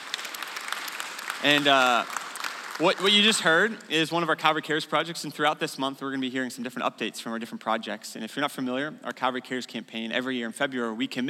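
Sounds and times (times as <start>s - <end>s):
church congregation applause during a morning service: 0.0s - 4.2s
speech: 1.4s - 2.2s, 2.8s - 11.2s.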